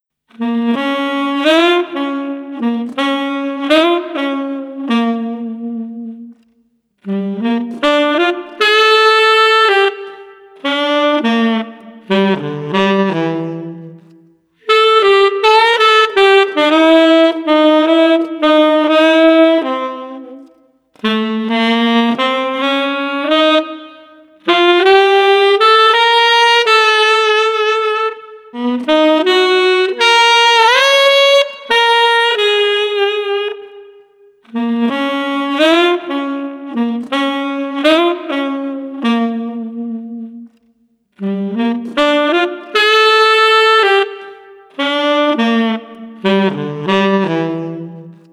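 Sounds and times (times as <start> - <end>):
relaxed street saxophone playing: 0.3 - 48.3.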